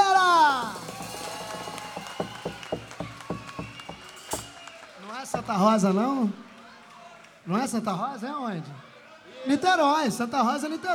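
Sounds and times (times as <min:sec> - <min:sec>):
audience applause: 0:00.6 - 0:07.8
speech: 0:05.5 - 0:06.5, 0:07.5 - 0:10.9.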